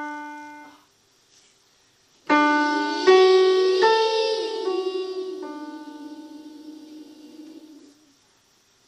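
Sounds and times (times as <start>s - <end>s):
vocals: 2.3s - 8.2s.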